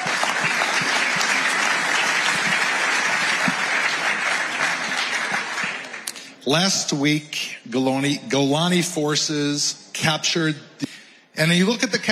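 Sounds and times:
large audience applause: 0.0 - 6.2
speech: 6.5 - 12.1.

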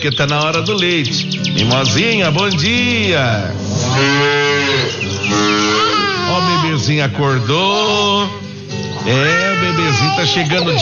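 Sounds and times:
speech: 0.0 - 5.6, 6.8 - 8.4, 9.0 - 10.8
dairy cow mooing at morning milking time: 3.7 - 6.8.

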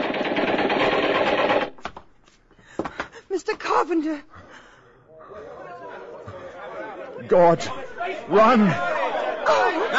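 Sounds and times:
gunfire volley at a fleeing man: 0.0 - 1.8
speech: 3.4 - 4.4, 7.3 - 9.9
laughter: 5.1 - 9.9.

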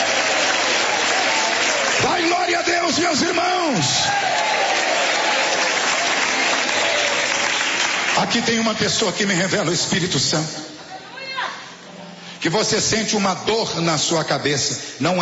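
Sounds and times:
audience clapping hands: 0.0 - 9.0
speech: 2.5 - 4.9, 8.2 - 10.8, 12.4 - 15.2.

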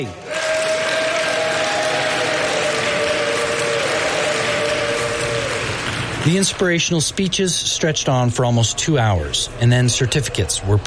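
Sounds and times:
speech: 0.0 - 0.3, 6.3 - 10.8
audience clapping and cheering for prison employees at a prison ceremony: 0.0 - 7.2.

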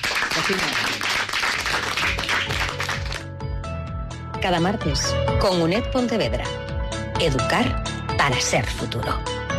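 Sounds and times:
audience applause: 0.0 - 3.2
speech: 0.5 - 1.0, 4.4 - 6.6, 7.2 - 9.4.

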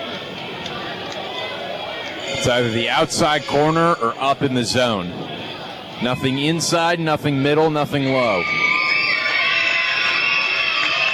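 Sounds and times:
stadium crowd cheering: 0.0 - 11.1
speech: 2.4 - 5.4, 6.0 - 8.7.

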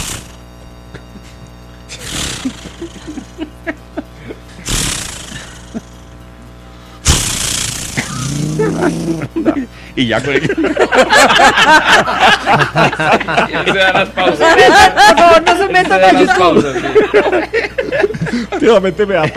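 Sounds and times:
voice imitating a chainsaw being started: 0.0 - 0.4, 1.9 - 6.2, 7.0 - 10.5
laughter: 0.9 - 4.5, 8.4 - 19.3
speech: 8.8 - 19.3.

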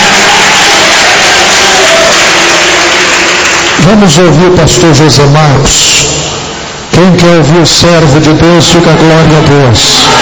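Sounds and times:
large gathering applauding and cheering loudly: 0.0 - 4.6, 9.9 - 10.2
speech: 3.9 - 6.2, 7.0 - 10.2.

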